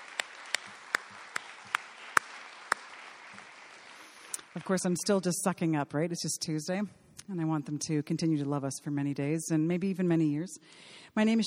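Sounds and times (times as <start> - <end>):
audience applause: 0.0 - 4.4
speech: 4.6 - 11.4.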